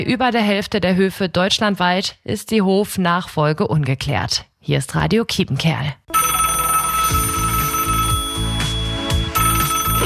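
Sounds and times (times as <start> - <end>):
speech: 0.0 - 6.2
phone ringing with a bright electronic tone: 6.1 - 10.0.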